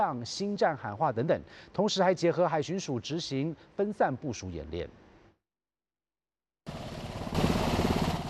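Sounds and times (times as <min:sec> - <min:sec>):
speech: 0:00.0 - 0:05.0
AH-64E Apache and OH-58D helicopter engines running during hot refueling: 0:06.7 - 0:08.2.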